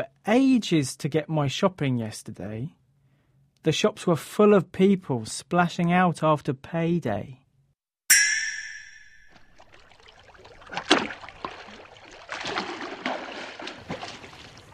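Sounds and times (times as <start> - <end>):
speech: 0.0 - 2.8, 3.6 - 7.4
person swimming and splashing in water: 9.3 - 14.7.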